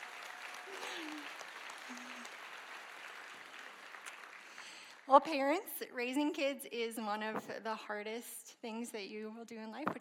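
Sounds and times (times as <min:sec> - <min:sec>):
audience applause: 0:00.0 - 0:05.1
speech: 0:05.1 - 0:09.9.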